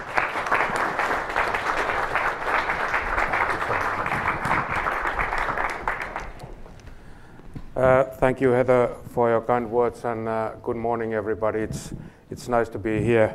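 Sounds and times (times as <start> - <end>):
audience applause welcoming speaker: 0.0 - 6.8
speech: 7.8 - 13.3.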